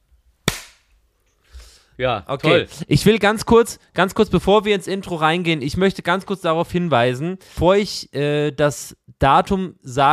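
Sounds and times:
single sharp hand clap for recording sync: 0:00.5 - 0:00.8
speech: 0:02.0 - 0:10.1.

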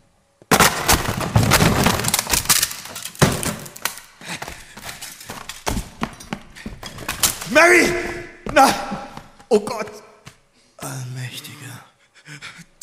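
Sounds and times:
door being broken open: 0:00.5 - 0:03.9
wood splintering: 0:00.5 - 0:04.1
speech: 0:07.5 - 0:08.9, 0:09.5 - 0:10.0.

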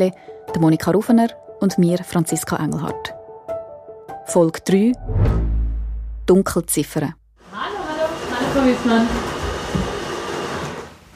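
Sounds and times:
speech: 0:00.0 - 0:03.2, 0:04.3 - 0:05.4, 0:06.3 - 0:07.8, 0:08.5 - 0:09.9
coffee machine running: 0:07.4 - 0:11.0.

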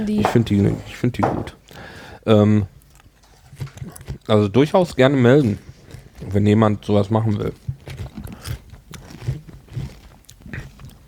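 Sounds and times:
speech: 0:00.0 - 0:02.7, 0:03.6 - 0:07.6
chewing and crunching while tasting honey-mustard food: 0:02.7 - 0:11.0.

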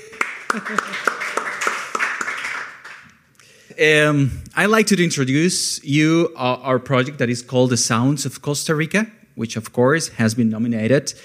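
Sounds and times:
laughter: 0:00.0 - 0:01.7
audience applause: 0:00.0 - 0:03.1
speech: 0:00.6 - 0:01.2, 0:03.8 - 0:11.2.

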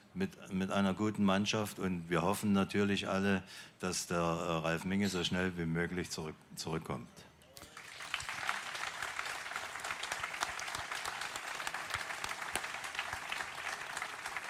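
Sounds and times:
speech: 0:00.2 - 0:07.3
audience applause: 0:07.6 - 0:14.4.

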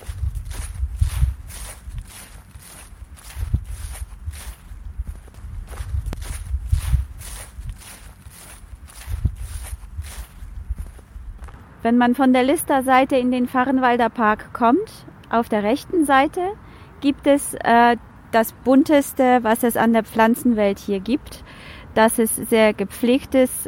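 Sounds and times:
footsteps of people walking through a park: 0:00.0 - 0:11.6
speech: 0:11.8 - 0:23.6.

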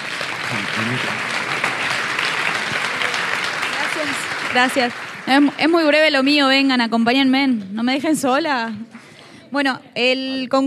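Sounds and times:
audience applause: 0:00.0 - 0:06.6
speech: 0:00.5 - 0:01.4, 0:04.0 - 0:10.6.

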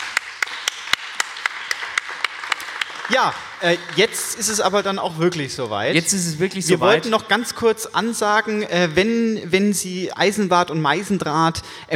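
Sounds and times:
audience applause: 0:00.0 - 0:04.8
speech: 0:03.1 - 0:11.9.

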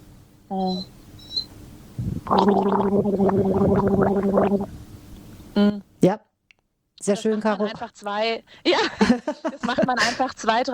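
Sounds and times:
speech: 0:00.5 - 0:01.0, 0:02.0 - 0:04.8, 0:05.6 - 0:06.3, 0:07.1 - 0:10.7
person vocalizing: 0:02.0 - 0:04.7
loud gargling with a sip of water: 0:02.0 - 0:04.8.

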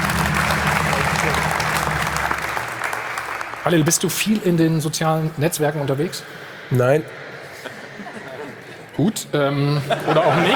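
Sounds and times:
audience applause: 0:00.0 - 0:04.9
speech: 0:03.7 - 0:07.2, 0:09.0 - 0:10.5
laughter: 0:07.0 - 0:10.5.

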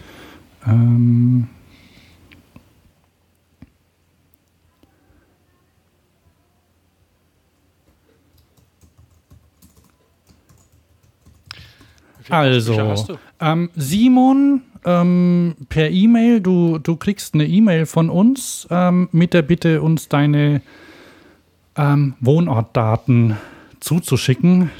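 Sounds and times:
speech: 0:00.6 - 0:01.6, 0:12.3 - 0:20.9, 0:21.8 - 0:24.7
typing on a computer keyboard: 0:07.8 - 0:12.3.

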